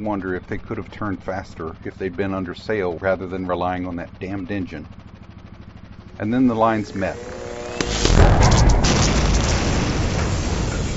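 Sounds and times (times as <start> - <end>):
speech: 0.0 - 5.1, 6.2 - 8.8
sustained low rumble: 7.1 - 10.9
crackling debris: 7.9 - 10.9
ship explosion with a deep roaring boom: 7.9 - 10.9.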